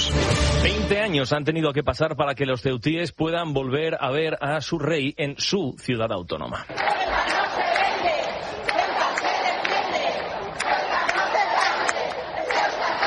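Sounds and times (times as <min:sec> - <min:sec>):
speech: 0:00.6 - 0:07.8
crowd shouting and cheering to greet the royals: 0:06.7 - 0:13.0.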